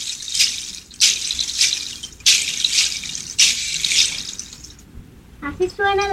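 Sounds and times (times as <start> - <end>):
seeds shaken as a percussion instrument: 0.0 - 4.8.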